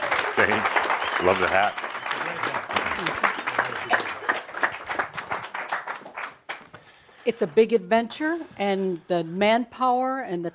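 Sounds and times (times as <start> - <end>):
audience applause: 0.0 - 6.7
speech: 0.4 - 2.4, 3.0 - 4.1, 7.2 - 10.5.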